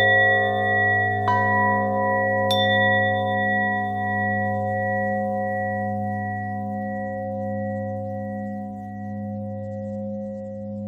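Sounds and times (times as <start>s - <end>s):
bells with harmonic twist: 0.0s - 10.7s.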